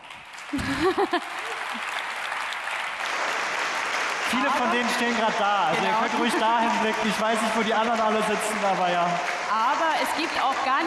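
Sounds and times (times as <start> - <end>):
crowd applauding: 0.0 - 10.8
laughter: 0.5 - 1.9, 4.3 - 8.7
speech: 0.5 - 1.9, 4.5 - 10.8.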